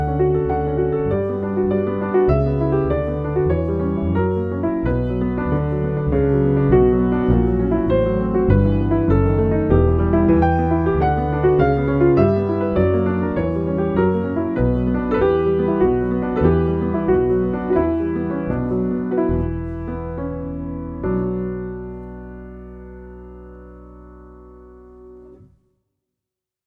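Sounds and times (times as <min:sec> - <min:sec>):
piano bass: 0:00.0 - 0:25.6.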